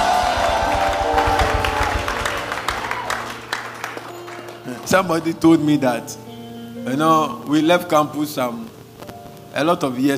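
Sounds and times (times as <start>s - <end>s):
audience shouting: 0.0s - 3.4s
audience clapping: 0.0s - 5.4s
speech: 4.9s - 8.8s, 9.5s - 10.1s.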